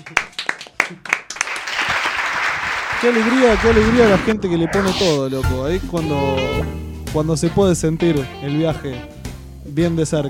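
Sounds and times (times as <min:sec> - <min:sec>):
audience applause: 0:00.0 - 0:03.8
speech: 0:03.0 - 0:10.2.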